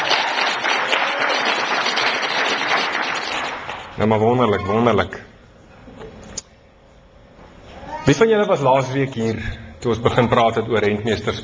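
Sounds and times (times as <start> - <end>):
crowd applause: 0.0 - 3.9
speech: 4.0 - 5.3, 8.1 - 11.4.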